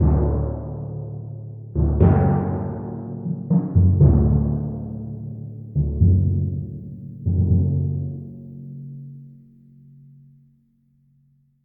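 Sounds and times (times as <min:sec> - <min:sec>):
timpani: 0:00.0 - 0:09.1.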